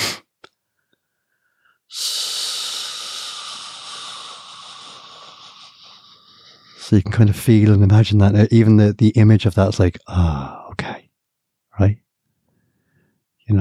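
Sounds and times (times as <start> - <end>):
person hissing exhale imitating a balloon deflating: 0.0 - 0.3, 1.9 - 6.8
breath clicks: 0.0 - 6.8
speech: 6.9 - 10.6, 11.8 - 12.0.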